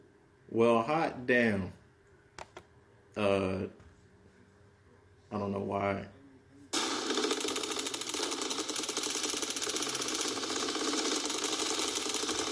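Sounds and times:
speech: 0.5 - 1.8, 3.2 - 3.8, 5.3 - 6.2
rapid-fire gunfire sound effect: 6.8 - 12.5.

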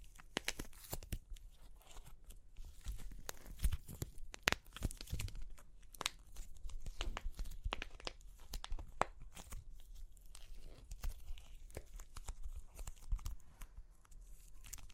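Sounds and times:
crunchy clay cracking: 0.0 - 14.9.

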